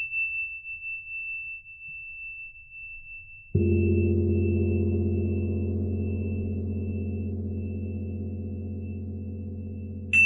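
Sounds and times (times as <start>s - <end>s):
deep Tibetan singing bowl struck: 3.6s - 10.2s
thin high ringing Tibetan singing bowl tone: 3.6s - 10.2s.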